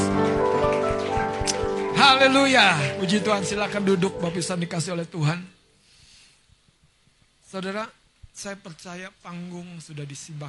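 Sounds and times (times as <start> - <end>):
audience applauding: 0.0 - 3.7
sustained musical tones: 0.0 - 5.2
speech: 2.0 - 5.6, 7.5 - 10.4.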